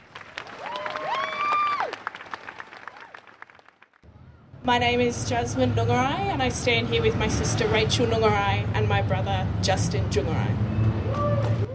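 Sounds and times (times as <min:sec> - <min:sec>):
audience applause at a rally: 0:00.0 - 0:04.0
speech: 0:04.6 - 0:10.7.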